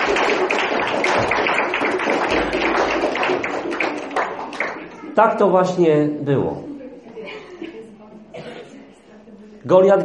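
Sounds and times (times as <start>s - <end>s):
audience applause: 0.0s - 5.1s
speech: 5.2s - 6.7s, 9.6s - 10.0s.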